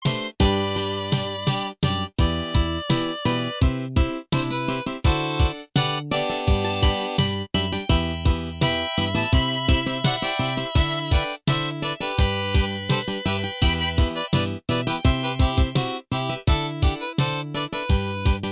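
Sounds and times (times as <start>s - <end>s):
harp: 0.0s - 18.4s.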